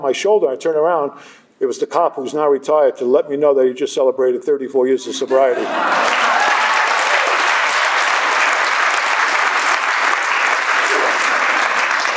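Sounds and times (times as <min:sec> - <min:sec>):
speech: 0:00.0 - 0:06.5
audience clapping: 0:05.8 - 0:12.1.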